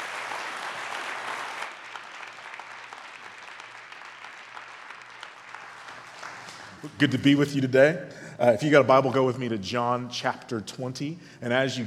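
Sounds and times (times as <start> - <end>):
church congregation applause welcoming a guest speaker at a morning service: 0.0 - 7.4
speech: 6.8 - 11.8.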